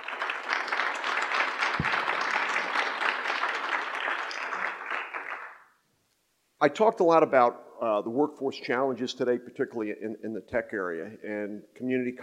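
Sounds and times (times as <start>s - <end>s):
audience applause welcoming a panel of speakers: 0.0s - 5.6s
speech: 6.6s - 12.2s.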